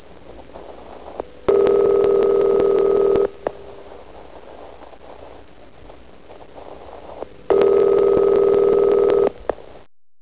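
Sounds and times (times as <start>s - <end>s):
telephone: 1.5s - 3.4s, 7.5s - 9.4s.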